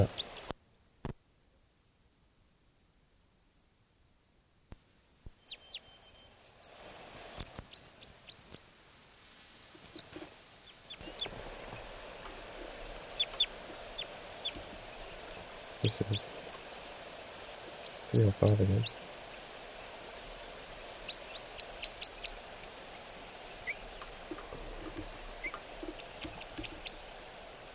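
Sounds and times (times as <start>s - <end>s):
bird flight calls: 5.4s - 8.7s, 9.3s - 27.7s
speech: 15.8s - 16.4s, 18.1s - 19.0s.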